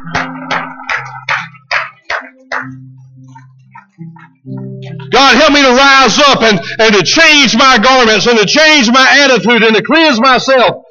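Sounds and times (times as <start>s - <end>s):
audience clapping hands in a steady rhythm: 0.0s - 5.1s
speech: 5.2s - 10.8s.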